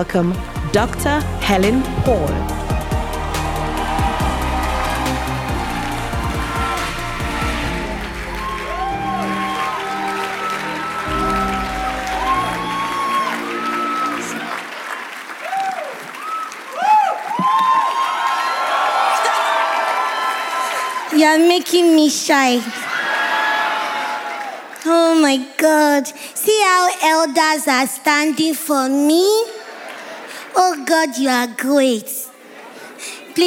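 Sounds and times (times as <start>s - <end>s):
speech: 0.0s - 2.6s, 21.2s - 22.8s, 24.9s - 29.6s, 30.6s - 32.2s
audience cheering with whoops and shouts: 0.4s - 24.8s
audience clapping in a standing ovation: 1.2s - 21.2s, 22.8s - 24.9s.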